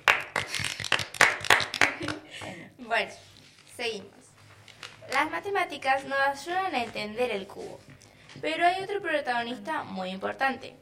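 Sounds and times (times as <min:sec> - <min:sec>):
sparse clapping for a singing studio operator: 0:00.0 - 0:02.3
speech: 0:02.9 - 0:04.2, 0:05.1 - 0:10.8.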